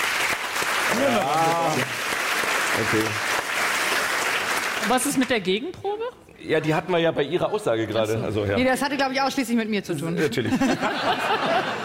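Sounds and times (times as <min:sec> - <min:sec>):
audience clapping during a live vote on perimeter building development: 0:00.0 - 0:05.5
speech: 0:02.8 - 0:03.3, 0:04.9 - 0:11.8
laughter: 0:10.2 - 0:11.8.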